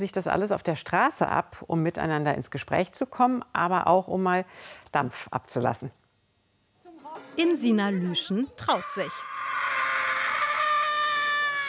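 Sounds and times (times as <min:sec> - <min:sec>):
speech: 0:00.0 - 0:06.0, 0:07.4 - 0:09.3
person screaming loudly: 0:07.8 - 0:11.6.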